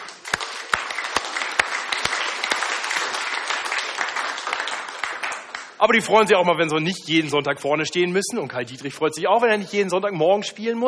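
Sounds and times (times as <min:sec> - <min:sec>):
audience applauding: 0:00.0 - 0:05.8
speech: 0:05.8 - 0:10.8.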